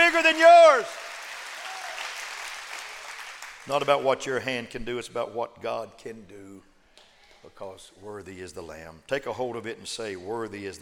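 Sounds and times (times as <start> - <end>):
audience clapping: 0.0 - 4.0
speech: 0.3 - 1.0, 3.7 - 6.7, 7.4 - 10.8.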